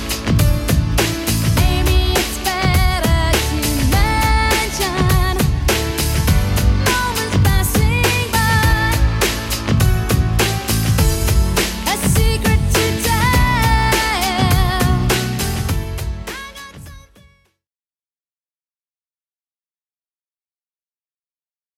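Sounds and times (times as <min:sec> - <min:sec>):
90s music beat at 102 bpm: 0:00.0 - 0:17.2.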